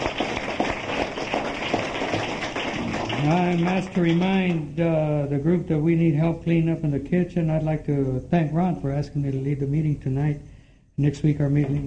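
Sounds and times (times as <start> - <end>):
applause: 0.0 - 4.6
speech: 3.2 - 11.8.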